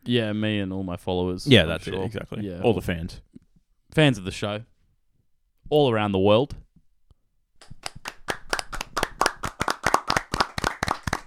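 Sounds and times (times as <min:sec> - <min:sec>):
speech: 0:00.0 - 0:03.3, 0:03.9 - 0:04.7, 0:05.7 - 0:06.6
hand claps applause: 0:07.6 - 0:11.2.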